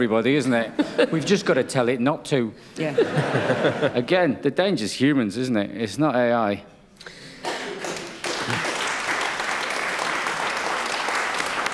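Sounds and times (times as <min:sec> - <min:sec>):
speech: 0:00.0 - 0:07.2
laughter: 0:00.4 - 0:01.8, 0:02.8 - 0:04.1, 0:07.6 - 0:08.8
round of applause: 0:07.4 - 0:11.7.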